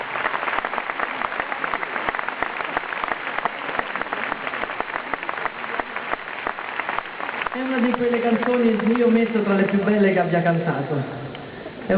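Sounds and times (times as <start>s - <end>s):
audience applause: 0.0s - 10.0s
speech: 7.6s - 11.2s.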